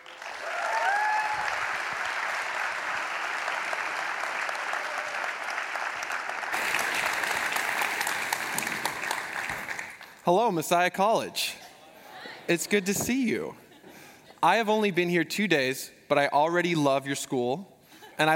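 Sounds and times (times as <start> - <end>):
audience applause welcoming a speaker at Messiah College: 0.0 - 10.2
speech: 10.3 - 11.5, 12.5 - 13.6, 14.4 - 18.3.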